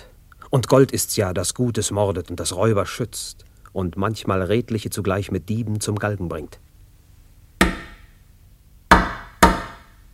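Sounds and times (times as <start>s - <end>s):
speech: 0.5s - 6.7s
solid wooden knocks on a door: 8.9s - 9.8s.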